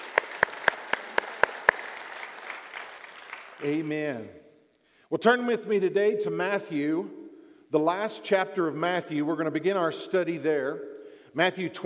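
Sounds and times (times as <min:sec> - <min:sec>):
church congregation rhythmic clapping welcoming guests: 0:00.0 - 0:04.3
speech: 0:03.6 - 0:04.4, 0:05.1 - 0:11.8.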